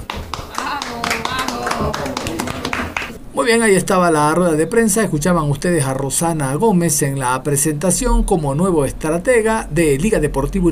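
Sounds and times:
applause at a press conference: 0.0s - 3.2s
speech: 3.4s - 10.7s.

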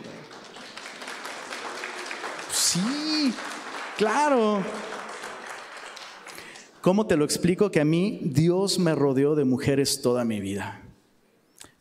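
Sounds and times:
audience applause: 0.0s - 6.9s
speech: 2.7s - 4.9s, 6.8s - 10.8s.

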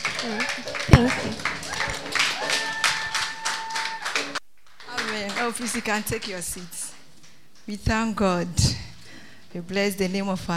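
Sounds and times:
audience clapping: 0.0s - 7.8s
speech: 0.2s - 1.6s, 5.5s - 6.8s, 7.7s - 8.8s, 9.5s - 10.5s.

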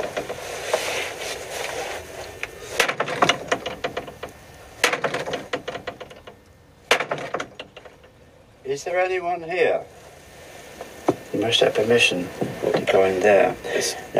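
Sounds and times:
wooden room door rattling and creaking: 0.0s - 0.5s, 2.8s - 8.2s
sharp clicks and knocks: 2.8s - 8.2s
speech: 8.8s - 10.0s, 11.4s - 14.1s.

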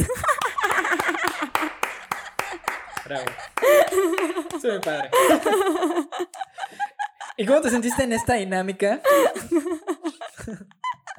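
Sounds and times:
audience applause: 0.0s - 5.8s
laughter: 0.0s - 11.1s
speech: 3.1s - 6.4s, 7.4s - 9.8s, 10.4s - 10.7s.

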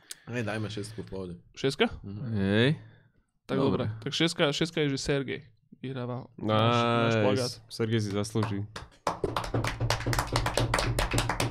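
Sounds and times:
speech: 0.3s - 8.9s
rapid hand clapping celebrating a win: 8.0s - 11.5s.

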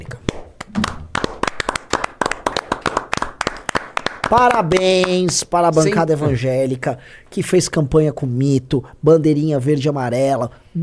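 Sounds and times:
hands clapping: 0.0s - 5.9s
speech: 4.3s - 10.8s.

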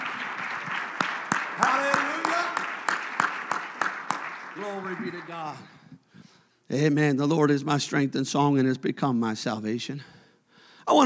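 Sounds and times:
audience clapping in a steady rhythmic beat: 0.0s - 6.1s
speech: 4.6s - 5.8s, 6.7s - 10.2s.

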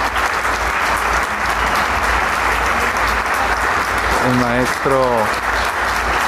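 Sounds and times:
concert audience applause: 0.0s - 6.2s
speech: 4.3s - 5.6s.

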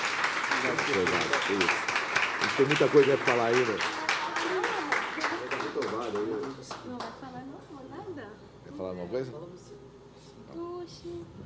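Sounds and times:
audience applause: 0.0s - 7.1s
speech: 0.6s - 4.6s, 8.8s - 11.4s.

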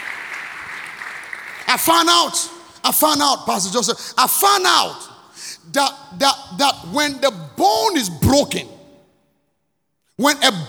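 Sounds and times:
audience clapping: 0.0s - 2.8s
speech: 1.7s - 8.7s, 10.2s - 10.6s.

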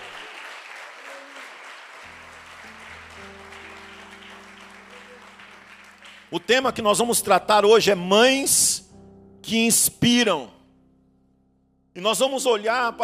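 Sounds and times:
audience clapping: 0.0s - 6.9s
sustained keyboard or organ chord: 2.1s - 13.0s
speech: 6.3s - 8.9s, 9.5s - 10.6s, 12.0s - 13.0s.

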